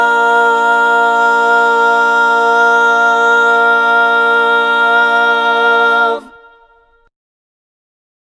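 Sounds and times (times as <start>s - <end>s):
tenor singing barbershop tags: 0.0s - 6.7s.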